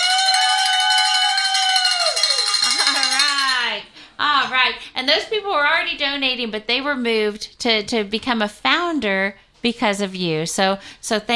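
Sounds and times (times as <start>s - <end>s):
bell ringing: 0.0s - 3.8s
speech: 4.7s - 11.3s.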